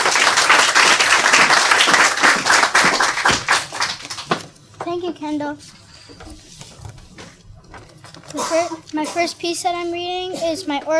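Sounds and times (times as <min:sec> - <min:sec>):
audience clapping: 0:00.0 - 0:04.5
speech: 0:04.9 - 0:06.5, 0:08.3 - 0:10.9.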